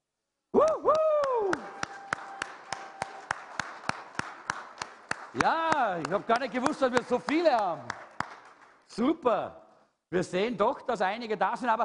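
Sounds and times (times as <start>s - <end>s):
audience applause: 0.7s - 8.8s
speech: 5.4s - 8.0s, 8.9s - 11.8s.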